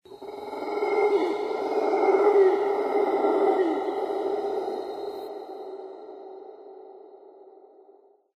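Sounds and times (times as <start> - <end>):
yeti animal call in a lair: 0.1 - 5.9.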